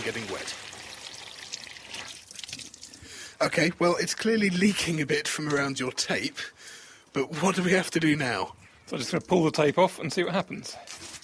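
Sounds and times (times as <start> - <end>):
speech: 0.0 - 0.7, 3.4 - 11.1
water filling bottle from outdoor tap: 0.0 - 3.0.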